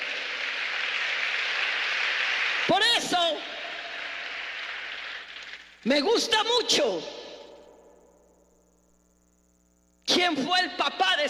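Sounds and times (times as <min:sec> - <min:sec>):
audience applause: 0:00.0 - 0:05.8
speech: 0:05.8 - 0:07.2, 0:10.2 - 0:11.2.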